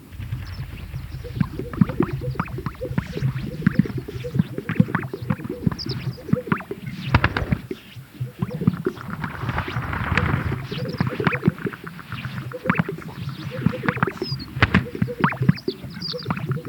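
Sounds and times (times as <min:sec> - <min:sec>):
swishing sounds: 0:00.1 - 0:07.7
greater sage-grouse chorus of pops and gulps: 0:00.1 - 0:11.7, 0:12.7 - 0:16.5.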